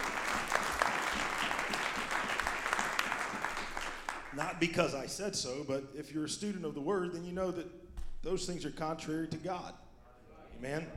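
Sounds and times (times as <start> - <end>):
audience clapping hands: 0.0 - 5.0
speech: 4.4 - 9.8, 10.6 - 10.9.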